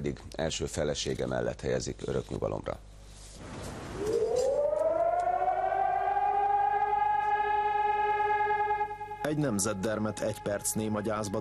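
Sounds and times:
speech: 0.0 - 3.0, 9.3 - 11.3
civil defense sirens wailing: 4.0 - 11.3.

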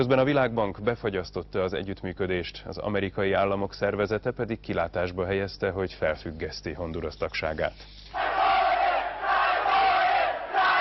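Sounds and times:
speech: 0.0 - 8.2
protesters shouting in a crowd: 8.2 - 10.8.

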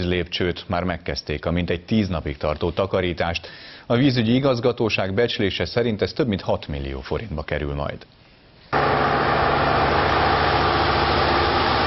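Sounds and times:
speech: 0.0 - 8.2
heavy engine running: 8.8 - 11.8.

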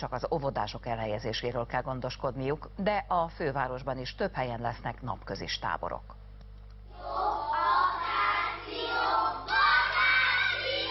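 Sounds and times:
speech: 0.0 - 6.2
schoolchildren shouting in unison like a chanted cheer: 6.9 - 10.9.

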